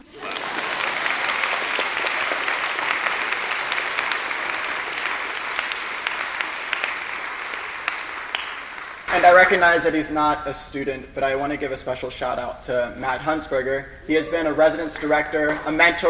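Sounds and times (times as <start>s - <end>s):
audience clapping: 0.0s - 10.0s, 14.8s - 16.0s
speech: 9.2s - 16.0s.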